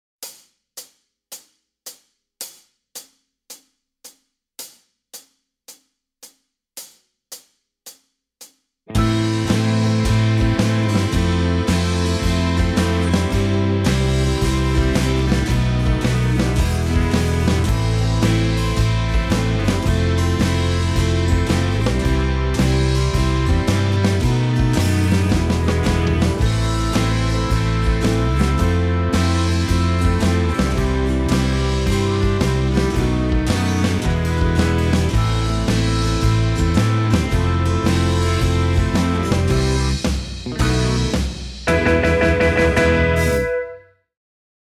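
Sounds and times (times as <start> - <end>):
backing track: 8.9 - 43.8.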